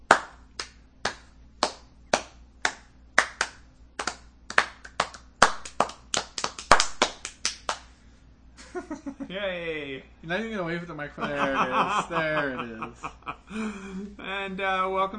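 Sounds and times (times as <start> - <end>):
slow clap: 0.0 - 8.0
laughter: 8.6 - 9.4, 11.2 - 14.2
speech: 8.9 - 15.1.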